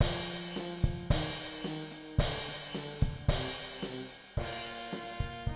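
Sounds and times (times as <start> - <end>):
percussion: 0.0 - 5.4.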